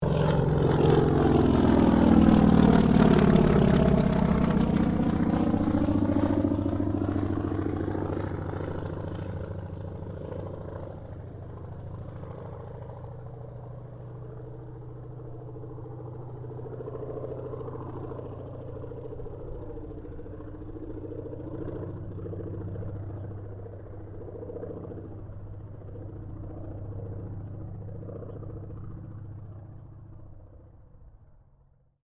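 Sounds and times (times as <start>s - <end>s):
CAC Wirraway aircraft passing: 0.0s - 32.0s.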